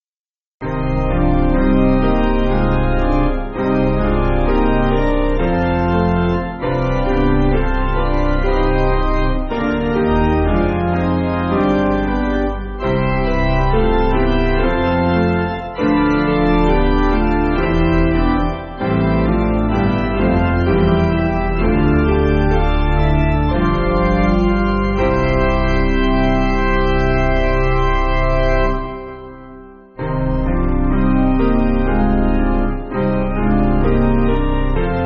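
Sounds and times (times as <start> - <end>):
piano piece: 0.6 - 35.0.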